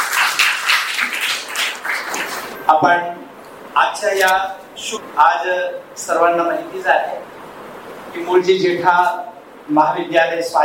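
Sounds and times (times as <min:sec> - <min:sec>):
audience applause at a college Sanskrit department event in Jalgaon: 0:00.0 - 0:02.6
speech: 0:02.7 - 0:07.4, 0:08.2 - 0:10.6.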